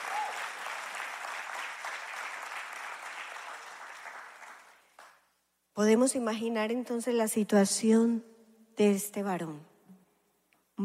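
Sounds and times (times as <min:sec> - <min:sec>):
audience applause: 0:00.0 - 0:05.2
speech: 0:05.8 - 0:09.7.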